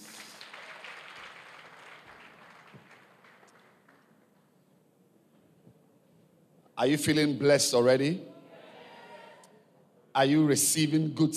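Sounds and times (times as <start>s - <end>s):
audience clapping: 0.0s - 4.5s
speech: 6.8s - 8.3s, 10.2s - 11.3s.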